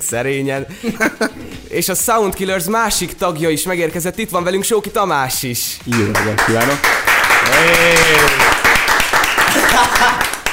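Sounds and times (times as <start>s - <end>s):
speech: 0.1s - 8.8s, 9.7s - 10.3s
laughter: 0.7s - 1.7s, 9.3s - 10.5s
applause: 5.8s - 10.5s.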